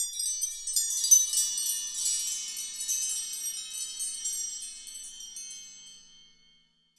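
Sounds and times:
percussion bells: 0.0s - 6.9s.

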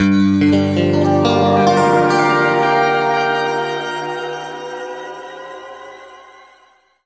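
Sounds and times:
guitar chords: 0.1s - 6.8s.

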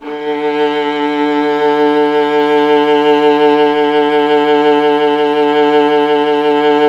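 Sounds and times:
viola: 0.0s - 6.8s.

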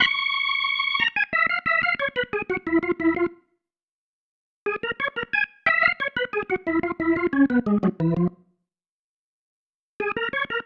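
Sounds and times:
organ pattern: 0.0s - 3.4s, 4.7s - 8.4s, 10.0s - 10.6s.

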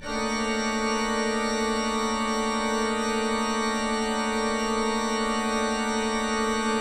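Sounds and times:
pipe drone clusters: 0.0s - 6.7s.

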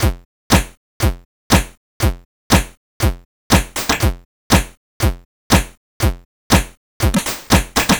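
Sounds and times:
C64 chiptune drum beat: 0.0s - 7.9s.

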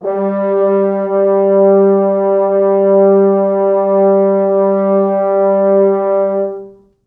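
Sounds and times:
four French horns: 0.0s - 7.0s.

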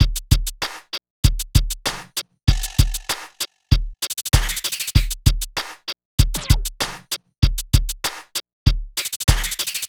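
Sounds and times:
music beat: 0.0s - 9.8s.

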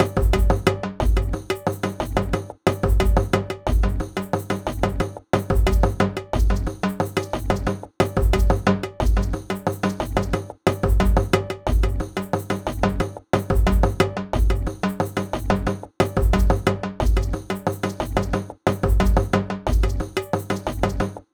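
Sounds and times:
world percussion combos: 0.0s - 21.3s.

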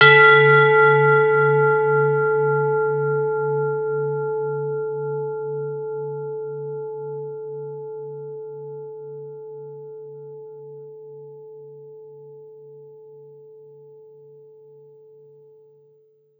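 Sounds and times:
bells: 0.0s - 4.4s
bowls: 0.0s - 15.7s.

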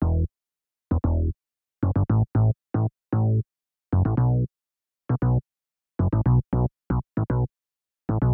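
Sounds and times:
bass line in A minor: 0.0s - 0.3s, 0.9s - 3.4s, 4.0s - 4.5s, 5.1s - 5.4s, 6.0s - 7.5s, 8.1s - 8.3s.

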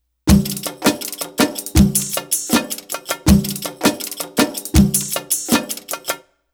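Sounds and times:
Arabic rhythm percussion: 0.3s - 6.2s.

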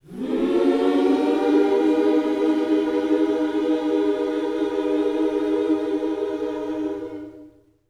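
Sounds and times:
gospel vocal scoops in a minor key: 0.0s - 7.6s.

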